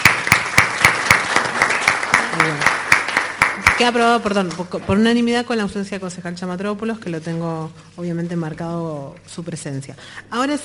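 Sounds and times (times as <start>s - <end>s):
applause in a council chamber: 0.0s - 4.2s
speech: 3.8s - 10.6s.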